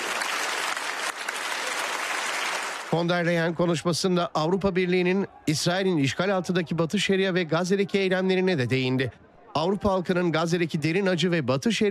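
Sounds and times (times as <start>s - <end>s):
standing ovation for von der Leyen and Canadian Prime Minister Carney: 0.0s - 3.6s
speech: 2.9s - 11.8s.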